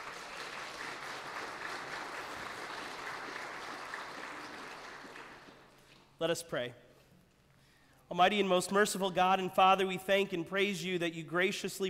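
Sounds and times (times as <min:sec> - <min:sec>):
audience applauding: 0:00.0 - 0:06.2
speech: 0:06.2 - 0:06.9, 0:08.1 - 0:11.8.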